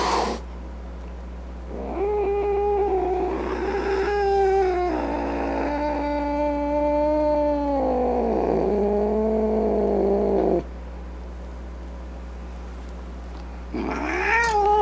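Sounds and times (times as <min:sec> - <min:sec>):
angry cat yowling: 0:00.0 - 0:00.4, 0:01.7 - 0:10.4, 0:13.8 - 0:14.8.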